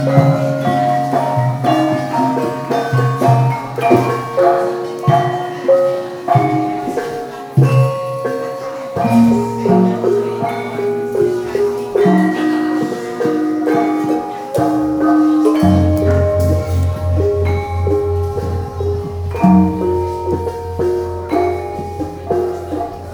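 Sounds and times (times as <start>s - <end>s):
court gamelan music in Indonesia: 0.0s - 23.1s.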